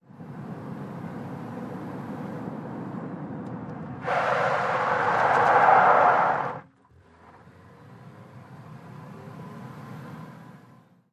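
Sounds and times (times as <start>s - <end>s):
small compact car 180 skid: 4.0s - 6.7s.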